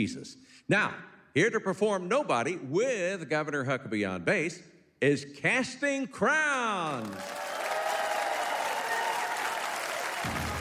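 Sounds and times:
speech: 0.0s - 7.4s
audience applause: 6.9s - 10.5s.

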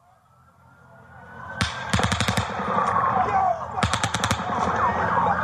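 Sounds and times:
gunshots: 1.6s - 5.3s.

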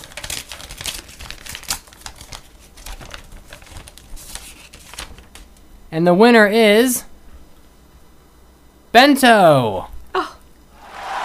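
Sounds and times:
gold-covered paper envelope crinkling as it is opened: 0.0s - 5.5s
speech: 5.9s - 7.1s, 8.9s - 9.9s.

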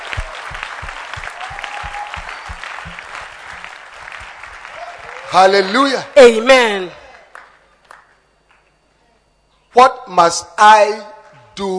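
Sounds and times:
audience clapping: 0.0s - 8.7s
speech: 5.3s - 7.0s, 9.8s - 11.7s.

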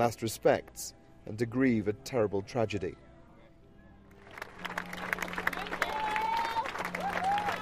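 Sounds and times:
speech: 0.0s - 3.0s
crowd applause at an outdoor vigil: 4.2s - 7.6s.

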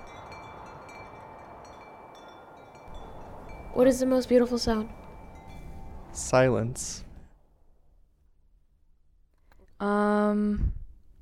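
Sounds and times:
wind blowing: 0.0s - 8.1s
speech: 3.8s - 5.0s, 6.2s - 7.1s, 9.8s - 10.8s.

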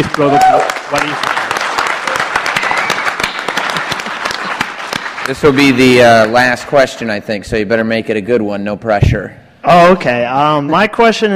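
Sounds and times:
speech: 0.0s - 1.4s, 5.3s - 11.3s
audience applause: 0.0s - 6.6s.

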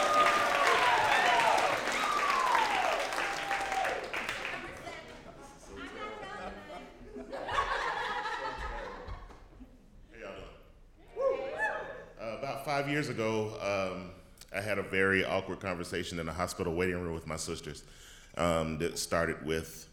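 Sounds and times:
audience whoops: 0.0s - 4.3s, 11.1s - 12.1s
live audience applause as speaker walks on: 0.0s - 5.6s
scattered audience laughter: 7.0s - 9.6s
speech: 12.8s - 19.9s.

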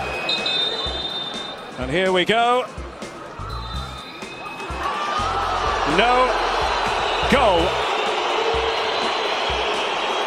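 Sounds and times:
football stadium crowd booing: 0.0s - 1.8s, 4.1s - 10.2s
speech: 1.8s - 2.8s, 5.9s - 6.4s, 7.3s - 7.8s.

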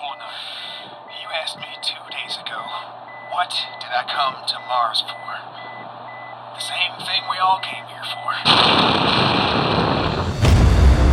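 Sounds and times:
steady hum: 0.0s - 11.1s
speech: 3.4s - 5.4s, 6.6s - 9.3s
thermonuclear array at the South Pole of Mars detonating: 8.5s - 11.1s.

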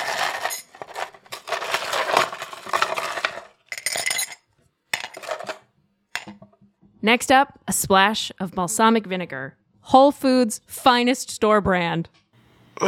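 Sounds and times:
ice cubes clinking into a cup: 0.0s - 4.4s, 5.0s - 5.6s
speech: 7.0s - 12.2s.

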